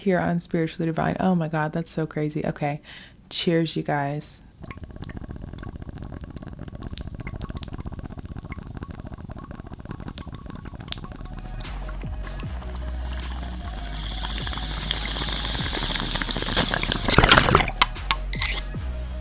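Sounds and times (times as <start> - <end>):
speech: 0.0 - 4.8
bong water bubbling: 4.5 - 19.1.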